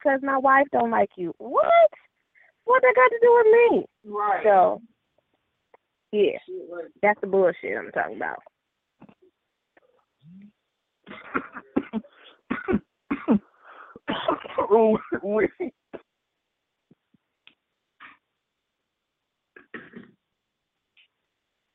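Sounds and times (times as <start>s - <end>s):
speech: 0.0s - 4.9s, 6.1s - 8.5s, 14.1s - 15.8s
person coughing, choking on water: 11.1s - 16.1s, 19.6s - 20.2s.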